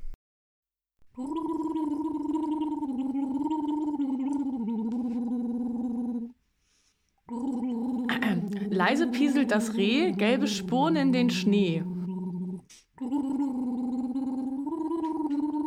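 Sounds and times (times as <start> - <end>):
person gargling a Christmas song melody: 1.2 - 6.3, 7.3 - 15.6
speech: 8.8 - 11.9.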